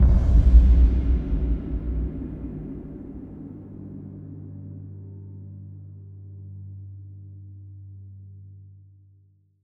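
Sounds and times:
dark impact: 0:00.0 - 0:05.9.

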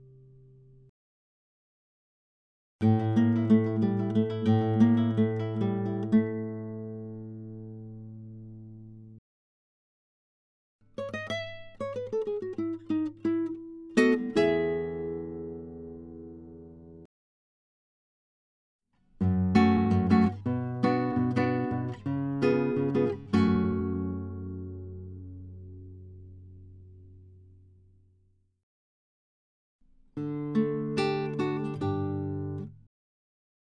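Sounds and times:
short Spanish guitar melodies: 0:02.8 - 0:09.2, 0:10.9 - 0:17.1, 0:19.2 - 0:27.7, 0:30.2 - 0:32.8.

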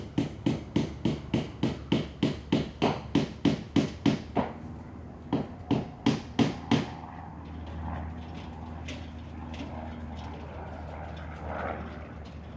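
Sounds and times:
sounds outside the window: 0:00.0 - 0:12.5
hammer knocking indoors: 0:00.1 - 0:04.6.

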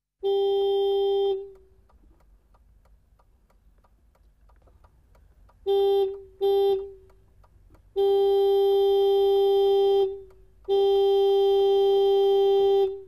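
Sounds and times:
tractor horn heard from inside: 0:00.2 - 0:01.6, 0:05.6 - 0:07.1, 0:07.9 - 0:13.0.

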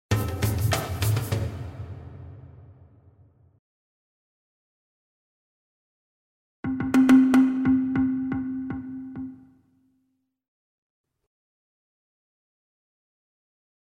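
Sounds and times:
medium fast rhythmic percussion: 0:00.1 - 0:01.6, 0:06.7 - 0:09.5.

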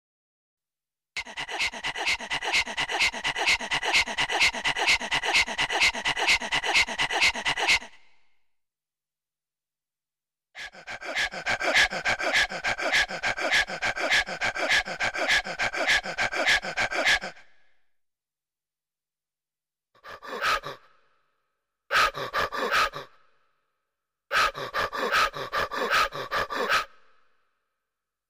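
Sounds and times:
funny sped-up breathing: 0:01.2 - 0:08.3, 0:10.6 - 0:17.8, 0:20.0 - 0:21.3, 0:21.9 - 0:23.2, 0:24.3 - 0:27.3.

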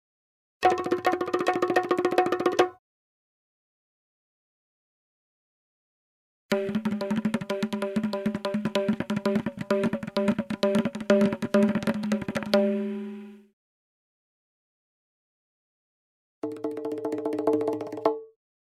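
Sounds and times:
African drummer drumming three sets of percussion: 0:00.6 - 0:02.8, 0:06.5 - 0:13.0, 0:16.4 - 0:18.2
short music: 0:06.5 - 0:13.5.

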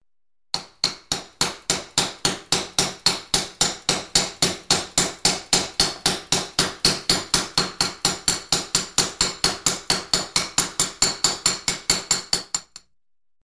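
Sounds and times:
hammer striking chisel indoors: 0:00.5 - 0:12.9.

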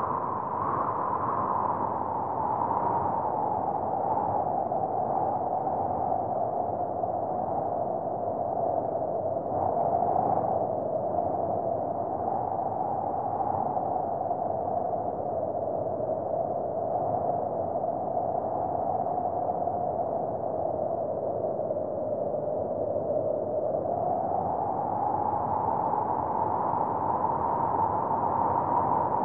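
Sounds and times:
wind in surround 3D sound: 0:00.0 - 0:29.2.

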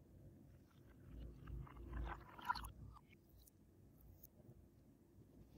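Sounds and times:
milk pouring into a glass: 0:01.1 - 0:03.1.

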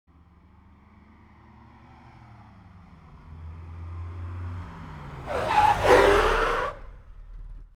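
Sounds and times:
car braking sharply: 0:05.0 - 0:07.7.

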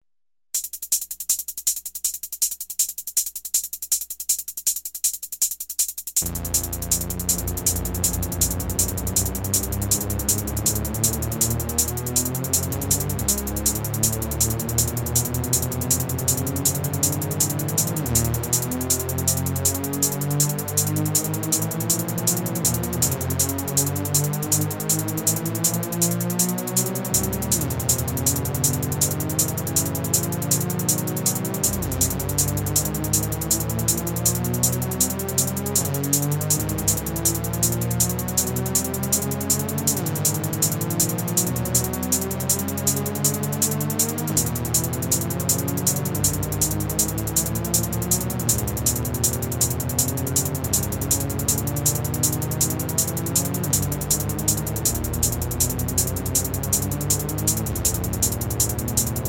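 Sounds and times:
artificial synthesizer racing sound: 0:06.2 - 0:59.2.

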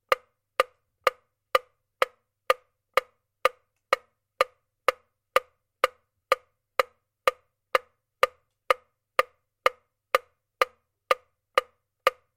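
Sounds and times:
mechanical metronome ticking: 0:00.0 - 0:12.3.

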